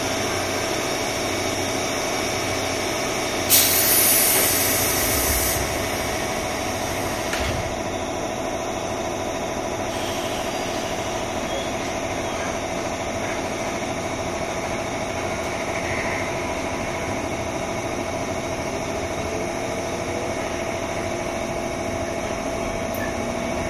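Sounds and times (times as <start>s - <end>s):
JR 201 series train motor and fan hum: 0.0s - 23.6s
loud air hiss: 3.5s - 7.7s, 9.9s - 11.0s.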